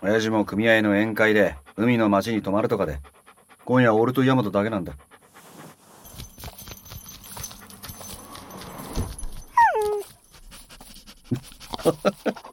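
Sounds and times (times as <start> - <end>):
speech: 0.0 - 5.1
dog panting: 0.5 - 12.5
paws pattering: 4.8 - 12.5
excited dog whimpering: 6.1 - 10.7.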